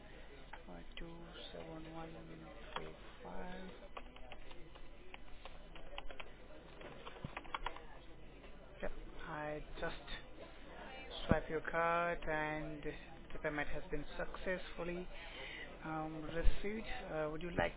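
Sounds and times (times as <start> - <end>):
speech: 1.0 - 4.1, 9.5 - 10.1, 11.3 - 17.7
computer keyboard typing as charges are entered at a billing desk: 3.5 - 7.8.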